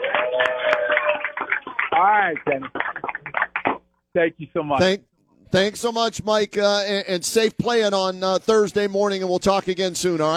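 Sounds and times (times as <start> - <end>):
whoops and shouts: 0.0 - 1.5
people clapping: 0.0 - 3.9
speech: 2.0 - 2.8, 4.2 - 10.3.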